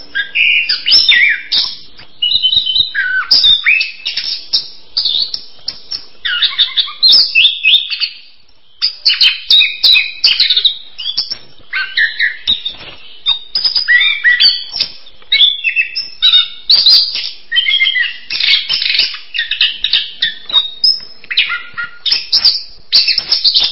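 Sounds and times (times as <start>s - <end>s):
songbird chattering: 0.0s - 23.6s.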